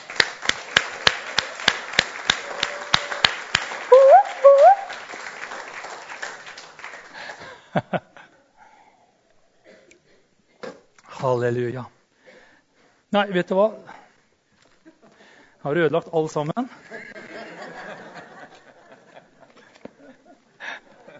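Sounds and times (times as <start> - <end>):
audience clapping: 0.0 - 7.8
speech: 7.8 - 8.1, 11.2 - 12.0, 13.1 - 13.9, 15.6 - 16.8
laughter: 16.7 - 21.1.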